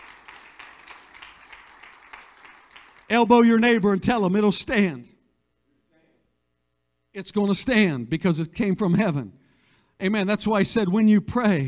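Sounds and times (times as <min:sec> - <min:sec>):
audience clapping hands: 0:00.0 - 0:03.4
speech: 0:03.1 - 0:05.1, 0:07.2 - 0:09.4, 0:10.0 - 0:11.6.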